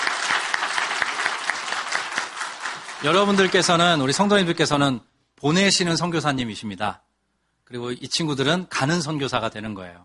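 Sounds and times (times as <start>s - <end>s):
audience applause: 0.0s - 4.3s
speech: 3.0s - 7.1s, 7.7s - 10.0s.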